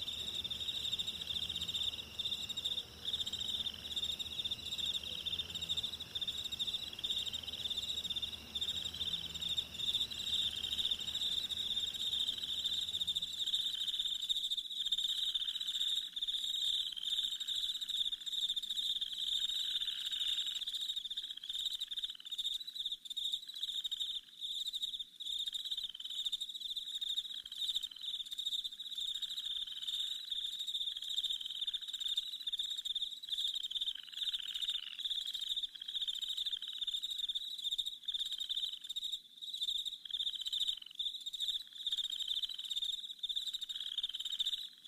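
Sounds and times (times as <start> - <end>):
rapid pulsing calls: 0.0 - 13.4
rainforest chorus of frogs and insects trilling: 0.0 - 44.8.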